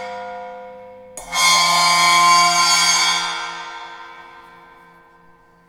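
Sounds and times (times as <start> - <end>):
metallic bowed cymbals: 1.2 - 5.6.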